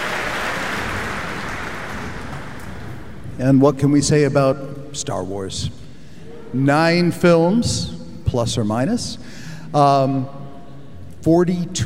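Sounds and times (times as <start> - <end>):
concert audience applause at the Kuzovitsky Music Shed: 0.0 - 3.1
speech: 3.4 - 5.8, 6.5 - 10.4, 11.2 - 11.8.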